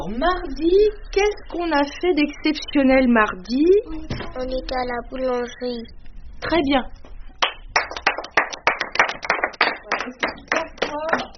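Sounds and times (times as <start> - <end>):
speech: 0.1 - 7.0, 10.1 - 10.4
hand clapping: 7.4 - 11.3.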